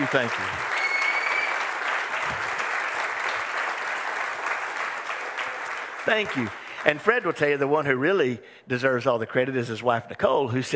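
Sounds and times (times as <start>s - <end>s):
crowd clapping hands: 0.0s - 7.9s
speech: 0.1s - 0.6s, 6.1s - 10.7s.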